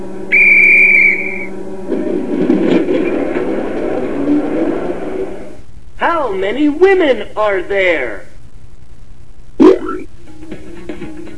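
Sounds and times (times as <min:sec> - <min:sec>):
train whistle: 0:00.3 - 0:01.6
train starting to move, rumbling and clattering: 0:01.5 - 0:05.6
speech: 0:06.3 - 0:08.2.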